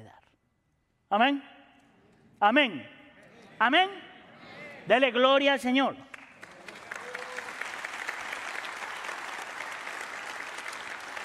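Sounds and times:
speech: 0:01.1 - 0:01.6, 0:02.4 - 0:03.0, 0:03.6 - 0:04.0, 0:04.8 - 0:06.1
audience applause: 0:06.1 - 0:11.2.

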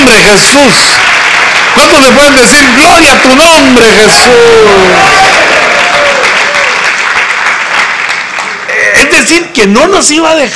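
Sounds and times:
audience clapping: 0:00.0 - 0:09.3
speech: 0:00.3 - 0:01.1, 0:01.8 - 0:05.4, 0:09.2 - 0:10.5.

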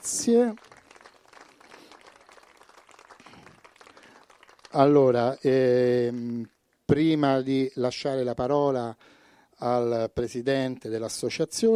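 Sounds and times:
audience applause: 0:00.0 - 0:05.2
speech: 0:00.2 - 0:00.7, 0:04.7 - 0:11.7.

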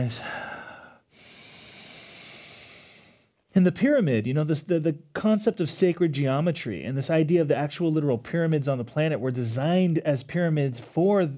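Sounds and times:
speech: 0:00.0 - 0:00.4, 0:03.6 - 0:11.3
deep breathing during a yoga flow in pyramid pose: 0:00.0 - 0:03.4.

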